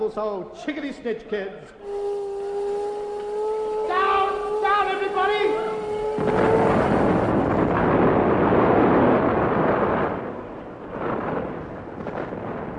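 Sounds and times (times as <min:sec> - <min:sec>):
speech: 0:00.1 - 0:02.1, 0:05.0 - 0:06.6
massive nuclear bomb explosion: 0:03.3 - 0:12.7.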